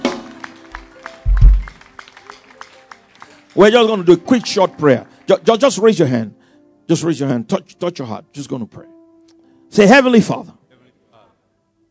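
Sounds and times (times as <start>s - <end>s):
sparse hand claps: 0.0s - 3.6s
heavier low thumps: 1.3s - 1.8s
speech: 3.6s - 9.0s, 9.7s - 10.6s.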